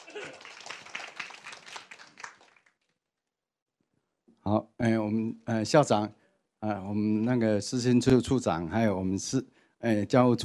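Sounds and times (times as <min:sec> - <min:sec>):
audience applause: 0:00.0 - 0:02.8
speech: 0:00.1 - 0:00.5, 0:04.5 - 0:10.4.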